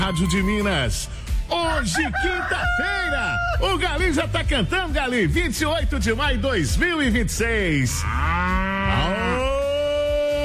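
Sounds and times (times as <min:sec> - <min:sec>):
speech: 0:00.1 - 0:09.1
dairy cow mooing at early-morning milking time: 0:07.9 - 0:09.6.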